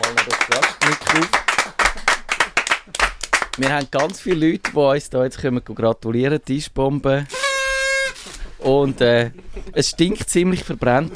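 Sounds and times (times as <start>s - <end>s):
applause: 0.0s - 4.8s
speech: 0.3s - 1.4s, 3.6s - 7.4s, 8.6s - 11.1s.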